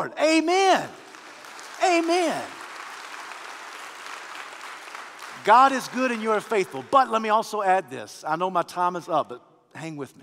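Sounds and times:
speech: 0.0s - 1.0s, 1.8s - 2.6s, 5.4s - 10.2s
large crowd applause: 0.2s - 7.6s.

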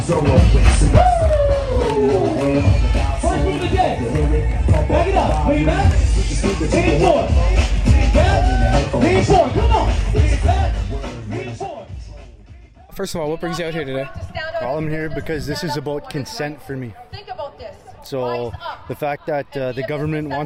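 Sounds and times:
protest crowd babble: 0.0s - 20.4s
speech: 0.1s - 1.1s, 1.8s - 2.9s, 3.9s - 11.2s, 13.0s - 20.4s
people shouting: 0.8s - 6.0s, 7.9s - 9.8s.

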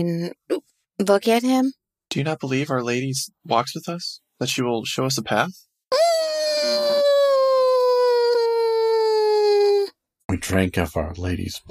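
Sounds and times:
speech: 0.0s - 6.2s, 10.4s - 11.6s
worried whimper made by voice: 5.9s - 9.9s.

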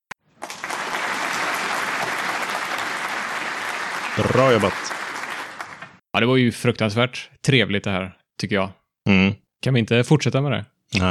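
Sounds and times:
applause: 0.2s - 6.0s
speech: 4.2s - 5.0s, 6.2s - 11.0s.

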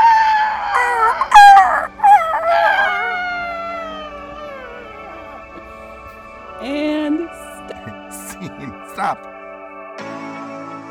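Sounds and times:
people imitating pterodactyl screeches: 0.0s - 6.2s
laughter: 7.6s - 9.2s.

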